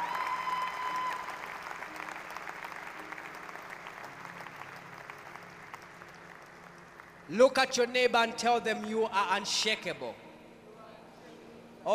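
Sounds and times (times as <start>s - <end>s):
audience clapping: 0.0s - 7.3s
speech: 7.3s - 10.2s.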